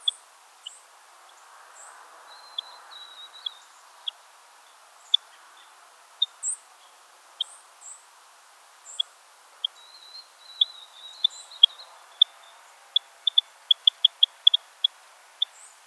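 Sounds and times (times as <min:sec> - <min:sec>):
purple finch Haemorhous purpureus purpureus calling: 0:10.5 - 0:15.7.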